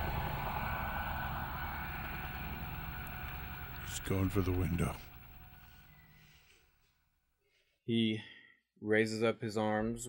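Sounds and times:
helicopter coming overhead and hovering: 0:00.0 - 0:06.4
speech: 0:04.0 - 0:05.1, 0:07.9 - 0:10.0.

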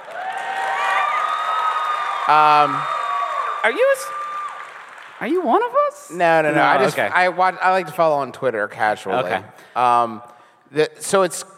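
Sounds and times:
live audience applause and cheering: 0:00.0 - 0:06.5
speech: 0:02.3 - 0:03.0, 0:03.6 - 0:04.2, 0:05.2 - 0:11.5.

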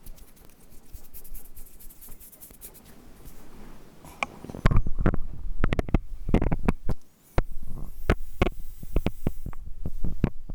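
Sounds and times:
soft muffled ear cleaning rubbing: 0:00.0 - 0:04.6, 0:06.1 - 0:10.4.

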